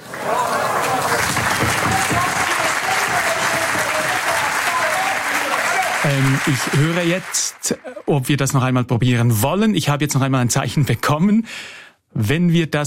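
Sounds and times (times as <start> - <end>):
applause in Germany as a space probe's last signal arrived: 0.0 - 8.5
speech: 6.0 - 12.8.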